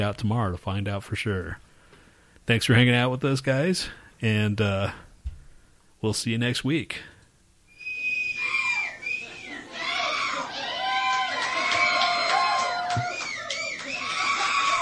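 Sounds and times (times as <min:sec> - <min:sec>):
speech: 0:00.0 - 0:01.7, 0:02.4 - 0:05.1, 0:06.0 - 0:07.1
crowd cheering wildly: 0:08.0 - 0:14.7.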